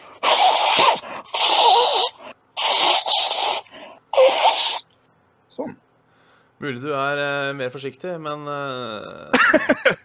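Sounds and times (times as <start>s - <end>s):
person blowing nose: 0.0s - 4.8s
speech: 6.6s - 10.0s.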